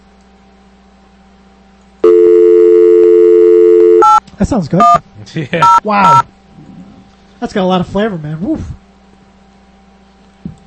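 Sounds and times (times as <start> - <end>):
telephone line busy signal: 2.0 - 4.2
speech: 4.4 - 6.3, 7.4 - 8.8.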